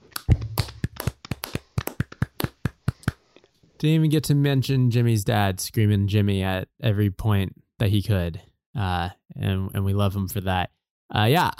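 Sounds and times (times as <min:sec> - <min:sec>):
hands clapping in celebration: 0:00.0 - 0:03.2
speech: 0:03.8 - 0:11.5.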